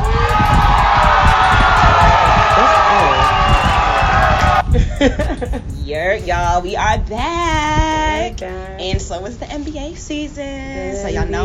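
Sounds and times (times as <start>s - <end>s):
crowd applauding: 0.0s - 4.6s
laughter: 4.6s - 5.7s
speech: 6.0s - 11.4s.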